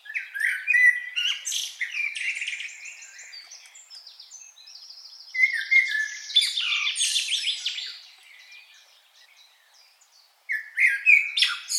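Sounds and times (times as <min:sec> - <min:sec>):
common blackbird Turdus merula calling: 0:00.0 - 0:11.7.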